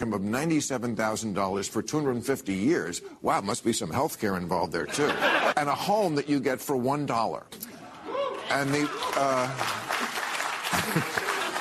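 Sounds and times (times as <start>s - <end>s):
speech: 0.0s - 7.7s, 8.5s - 9.9s
laughter: 4.9s - 5.6s, 7.6s - 11.5s
audience clapping: 8.3s - 11.5s.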